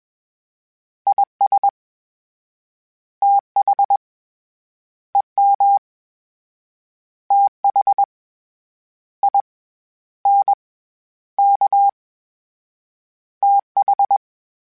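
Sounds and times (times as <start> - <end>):
Morse code CW code groups: 1.1 - 1.7, 3.3 - 4.0, 5.4 - 5.8, 7.3 - 8.1, 11.4 - 11.9, 13.5 - 14.2.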